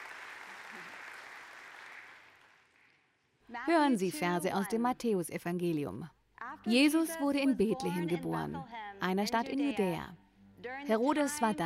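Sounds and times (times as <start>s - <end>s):
audience applause: 0.0s - 3.1s
speech: 3.5s - 11.6s.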